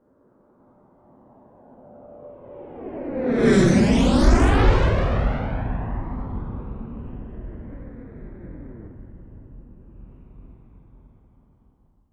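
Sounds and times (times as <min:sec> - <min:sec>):
military jet FA-18 Hornet turbine flyby: 0:02.8 - 0:09.4.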